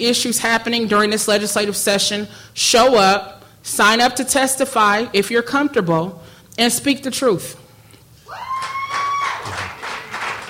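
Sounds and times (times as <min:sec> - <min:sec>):
speech: 0:00.0 - 0:07.6
sparse applause from about ten people: 0:08.3 - 0:10.4.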